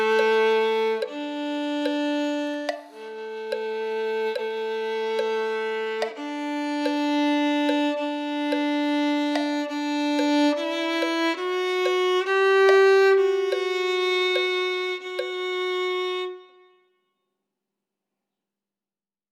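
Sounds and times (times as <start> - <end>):
violin: 0.0 - 17.0.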